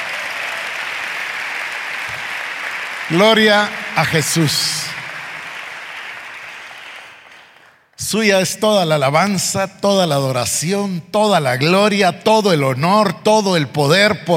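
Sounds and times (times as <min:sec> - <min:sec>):
audience applauding loudly: 0:00.0 - 0:07.9
speech: 0:03.1 - 0:04.8, 0:08.1 - 0:14.3.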